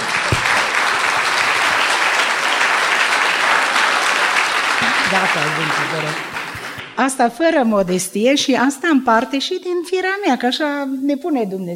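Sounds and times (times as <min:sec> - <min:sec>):
audience applause: 0:00.0 - 0:07.0
speech: 0:05.3 - 0:06.4, 0:07.0 - 0:11.7.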